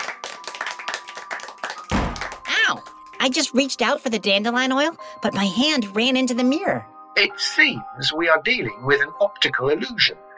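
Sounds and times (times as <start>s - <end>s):
applause: 0.0s - 3.2s
speech: 2.7s - 10.3s.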